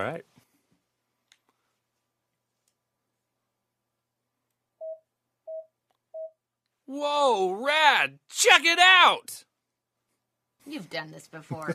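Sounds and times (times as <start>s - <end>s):
speech: 0.0s - 0.3s, 6.9s - 9.5s, 10.6s - 11.7s
faint clicks and taps: 0.7s - 1.6s
three countdown electronic beeps: 4.8s - 6.4s.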